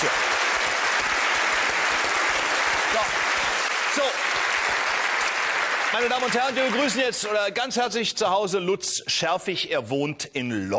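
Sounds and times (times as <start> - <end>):
studio audience applause: 0.0 - 8.0
speech: 5.9 - 10.7.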